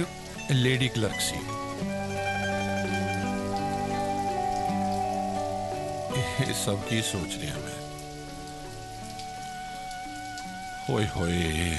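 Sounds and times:
speech: 0:00.0 - 0:01.6, 0:06.4 - 0:07.8, 0:10.9 - 0:11.7
rain falling: 0:00.0 - 0:11.7.

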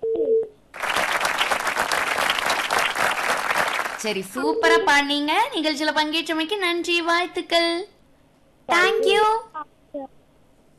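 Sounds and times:
audience applause for a singer in a show: 0:00.8 - 0:04.0
speech: 0:04.0 - 0:07.9, 0:08.7 - 0:10.2.

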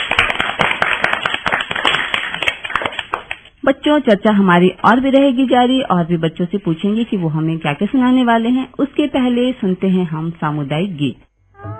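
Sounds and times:
children clapping: 0:00.0 - 0:03.5
speech: 0:03.7 - 0:11.3.

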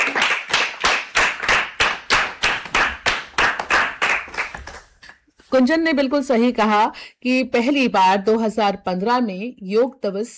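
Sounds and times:
children clapping: 0:00.0 - 0:05.2
speech: 0:05.5 - 0:10.3.

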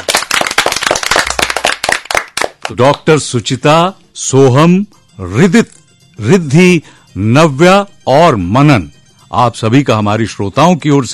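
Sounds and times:
loud applause from guests in a radio studio: 0:00.0 - 0:02.6
speech: 0:02.7 - 0:11.1.

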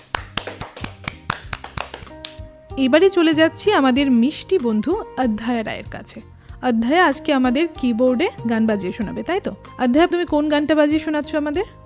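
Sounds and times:
audience clapping for a young child performer: 0:00.0 - 0:02.5
speech: 0:02.8 - 0:11.8.

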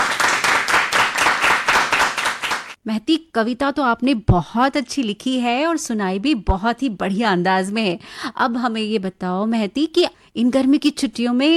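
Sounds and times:
children clapping hands: 0:00.0 - 0:02.8
speech: 0:02.9 - 0:11.5.

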